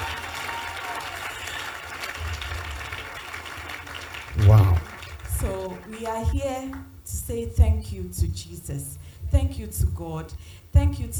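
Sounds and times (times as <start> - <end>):
audience clapping: 0.0 - 6.9
speech: 6.0 - 11.1.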